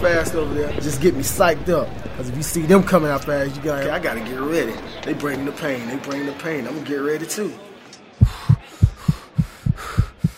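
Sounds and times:
speech: 0.0 - 8.4
fast heartbeat of a nervous racer: 8.2 - 10.3.

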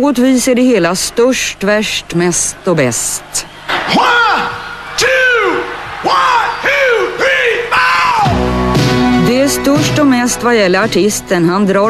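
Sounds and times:
speech: 0.0 - 4.4, 9.5 - 11.8
huge stadium concert crowd roaring rhythmic shouts in unison: 2.2 - 9.2.

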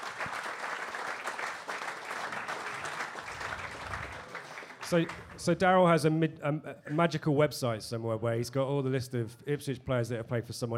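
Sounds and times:
audience applause: 0.0 - 5.6
speech: 4.9 - 10.7.

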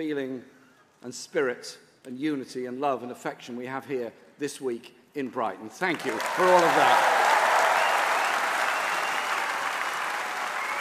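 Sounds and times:
speech: 0.0 - 7.2
conference crowd applause: 6.0 - 10.7.

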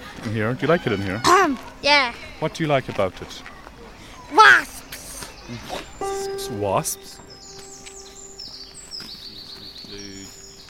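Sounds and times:
speech: 0.2 - 3.5, 5.5 - 7.2
birds singing in a park: 2.3 - 10.6.

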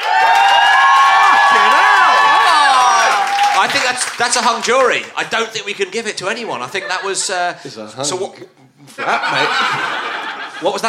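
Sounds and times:
audience applause: 0.0 - 5.7
speech: 3.6 - 10.8
laughter: 6.2 - 7.6, 8.9 - 10.8.

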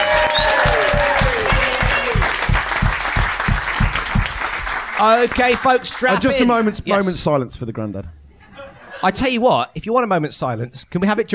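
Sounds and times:
whoops and whistles: 0.0 - 2.4
loud clapping: 0.0 - 6.2
rhythmic low thumping: 0.3 - 5.5
speech: 5.0 - 8.2, 9.0 - 11.3
laughter: 8.4 - 9.4.

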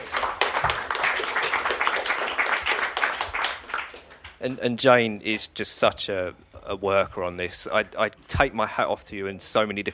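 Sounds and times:
audience applause: 0.0 - 4.3
speech: 4.4 - 9.9.

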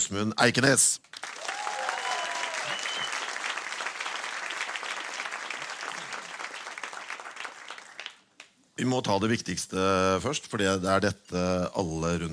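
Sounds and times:
speech: 0.1 - 1.2, 8.8 - 12.3
audience applause: 1.2 - 8.3.

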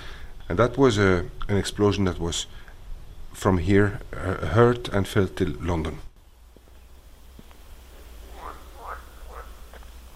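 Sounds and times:
speech: 0.5 - 2.6, 3.4 - 6.1
frogs croaking in a pond: 6.2 - 10.1.

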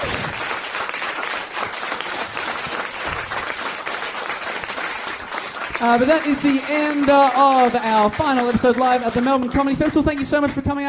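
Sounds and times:
audience applause: 0.0 - 10.6
speech: 5.8 - 10.8.

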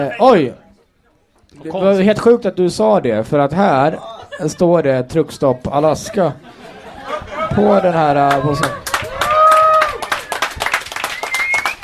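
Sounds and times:
speech: 0.0 - 0.6, 1.5 - 6.7, 7.5 - 8.8
laughter: 3.8 - 9.0
strange audience applause: 7.6 - 11.8.

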